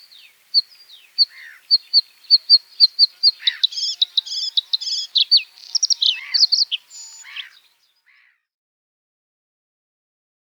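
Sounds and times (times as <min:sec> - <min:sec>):
bluethroat calling: 0:00.0 - 0:08.4.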